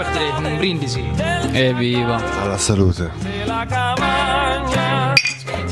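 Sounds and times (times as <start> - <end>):
speech: 0.2 - 5.3
glass breaking: 5.2 - 5.6.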